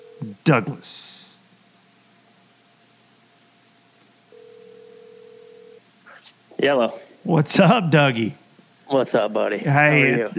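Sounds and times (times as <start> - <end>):
phone line hiss: 0.0 - 0.4, 4.3 - 6.2
speech: 0.2 - 1.3, 6.6 - 10.3.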